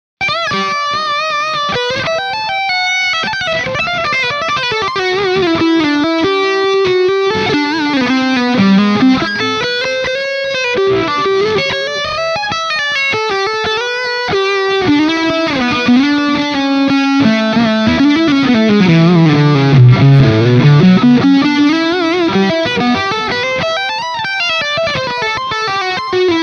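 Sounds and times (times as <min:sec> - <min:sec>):
overdriven lead guitar line on bridge pickup: 0:00.2 - 0:26.4.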